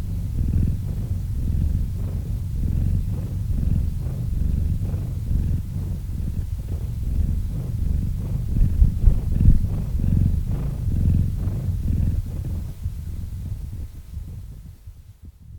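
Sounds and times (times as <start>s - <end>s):
domestic cat purring: 0.0s - 15.5s.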